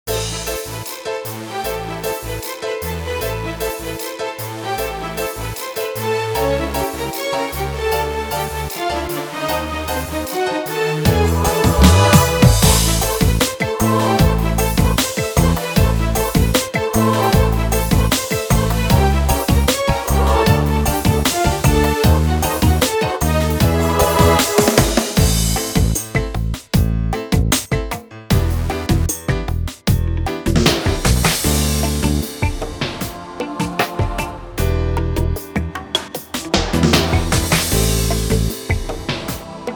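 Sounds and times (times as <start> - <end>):
electro gospel music: 0.0 - 39.7.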